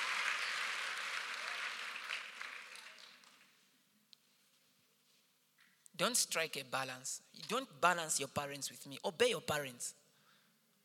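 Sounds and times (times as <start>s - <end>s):
audience applauding: 0.0s - 3.6s
speech: 6.0s - 10.0s.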